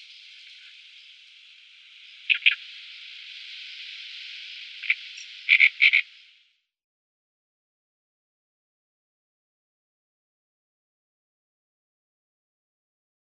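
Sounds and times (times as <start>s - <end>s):
great reed warbler song: 0.0s - 6.5s.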